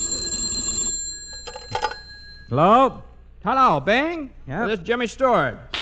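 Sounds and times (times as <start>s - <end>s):
telephone ringing: 0.0s - 2.6s
speech: 2.5s - 5.7s.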